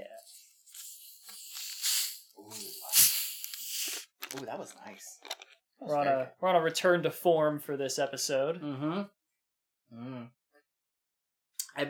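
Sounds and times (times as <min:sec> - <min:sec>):
can of Faygo soda cracked open and fizzing: 0:00.7 - 0:04.4
speech: 0:04.3 - 0:09.2, 0:09.9 - 0:10.4.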